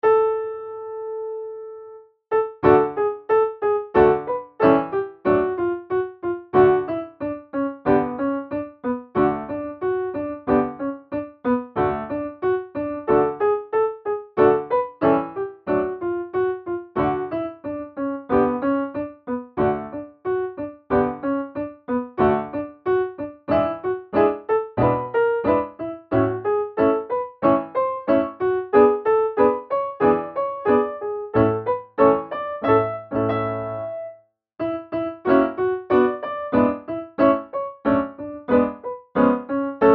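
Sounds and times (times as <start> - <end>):
piano: 0.0 - 39.9.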